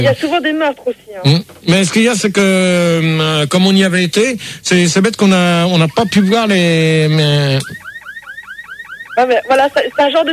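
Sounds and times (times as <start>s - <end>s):
speech: 0.0s - 7.8s, 9.2s - 10.3s
siren: 5.9s - 10.3s.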